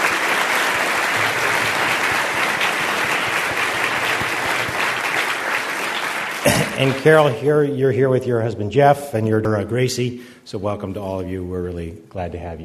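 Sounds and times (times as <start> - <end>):
audience applause: 0.0 - 7.8
speech: 6.8 - 12.6.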